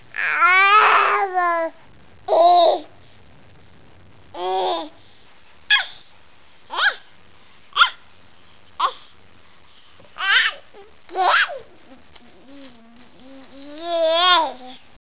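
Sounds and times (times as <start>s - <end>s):
baby: 0.1s - 3.0s, 4.4s - 5.0s, 5.7s - 6.0s, 6.7s - 7.1s, 7.7s - 8.0s, 8.8s - 9.1s, 10.0s - 14.9s.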